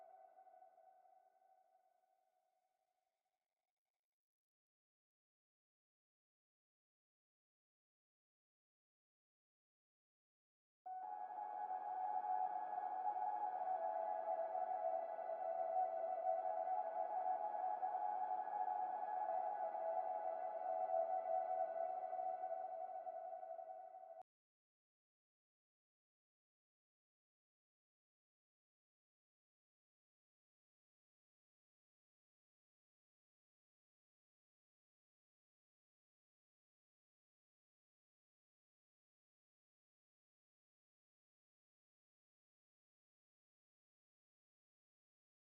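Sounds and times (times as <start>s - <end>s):
atmosphere: 10.9s - 24.2s.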